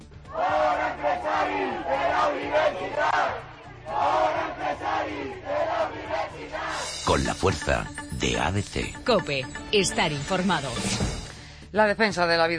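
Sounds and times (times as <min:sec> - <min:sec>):
crowd of students shouting and heckling: 0:00.3 - 0:06.7
speech: 0:07.1 - 0:11.1, 0:11.7 - 0:12.5.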